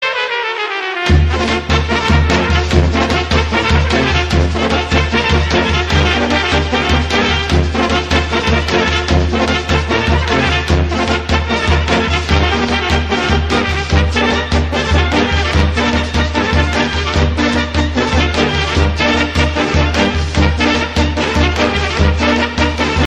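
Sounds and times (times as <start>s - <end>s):
brass band trumpets: 0.0s - 23.0s.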